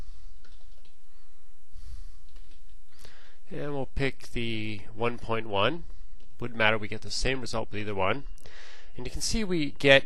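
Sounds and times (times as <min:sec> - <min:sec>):
steady hiss: 0:00.0 - 0:10.0
computer keyboard clicking as a URL is typed into Internet Explorer: 0:00.4 - 0:01.0, 0:02.3 - 0:02.8
speech: 0:03.5 - 0:10.0.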